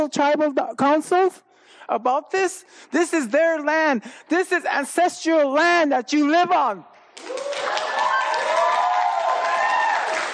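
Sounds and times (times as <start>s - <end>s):
speech: 0.0s - 7.5s
audience applauding: 7.2s - 10.3s
cheering voices: 7.2s - 10.3s.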